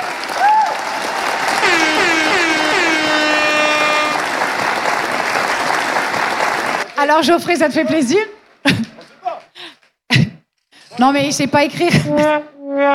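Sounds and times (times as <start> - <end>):
audience applause at a concert: 0.0 - 7.0
crowd cheering and whooping: 0.0 - 7.0
speech: 7.0 - 8.8, 11.0 - 12.9.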